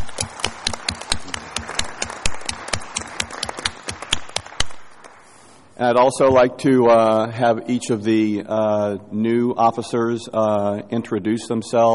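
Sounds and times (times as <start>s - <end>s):
audience applause: 0.0s - 5.3s
speech: 5.8s - 11.9s.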